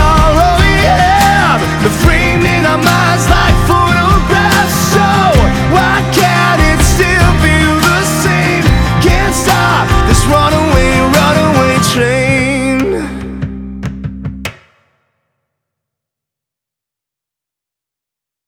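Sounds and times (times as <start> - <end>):
acoustic music: 0.0 - 14.6.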